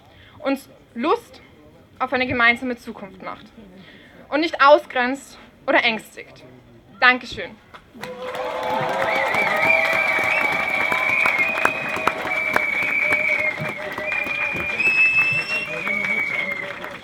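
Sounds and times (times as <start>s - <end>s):
speech: 0.4s - 1.4s, 2.0s - 9.0s
crowd applause at a rally: 8.0s - 17.0s.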